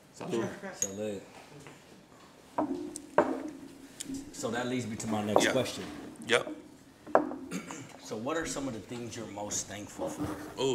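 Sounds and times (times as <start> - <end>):
speech: 0.2 - 1.9, 2.6 - 2.9, 4.4 - 6.6, 8.1 - 10.7
glasses clinking in a toast: 2.6 - 8.0.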